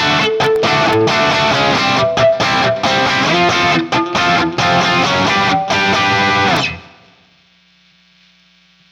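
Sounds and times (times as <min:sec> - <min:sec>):
1988 Guild Liberator Elite guitar with JCM800 single coil: 0:00.0 - 0:07.3.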